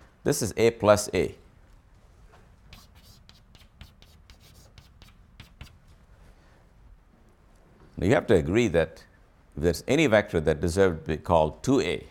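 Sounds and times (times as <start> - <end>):
speech: 0.2 - 1.4, 8.0 - 12.1
scratchy strokes of a hand drawing vector arrows: 2.7 - 5.8.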